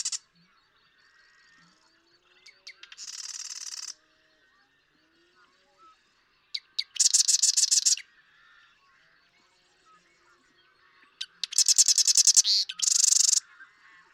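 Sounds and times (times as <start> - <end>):
marsh wren rattling song: 0.0 - 0.2, 2.6 - 4.0, 6.6 - 8.0, 11.2 - 13.4.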